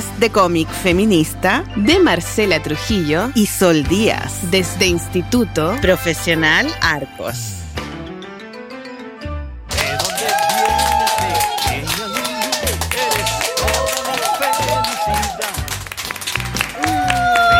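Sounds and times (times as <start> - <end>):
speech: 0.2 - 7.6
group applause: 9.7 - 17.5.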